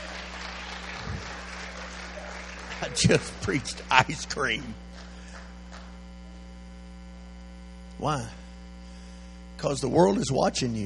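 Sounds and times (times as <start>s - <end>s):
people clapping hands: 0.0s - 4.1s, 4.9s - 6.0s
speech: 2.8s - 4.9s, 8.0s - 8.4s, 9.6s - 10.8s.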